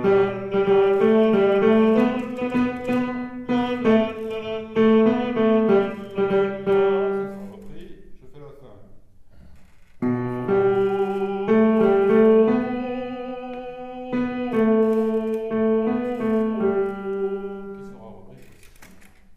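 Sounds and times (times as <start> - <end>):
tenor voices singing: 0.0 - 7.2, 10.5 - 18.0.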